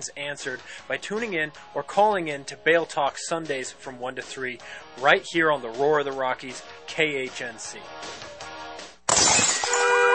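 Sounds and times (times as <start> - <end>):
speech: 0.0 - 8.3
falling glass shards tinkling: 9.1 - 9.9
brick smashing through a window with shattering glass: 9.1 - 10.1.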